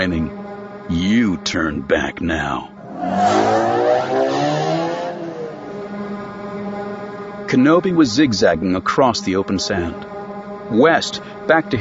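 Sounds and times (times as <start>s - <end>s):
speech: 0.0s - 4.5s, 7.5s - 10.1s, 10.7s - 11.7s
Star Wars speeder bike electronic engine hum: 0.0s - 11.7s.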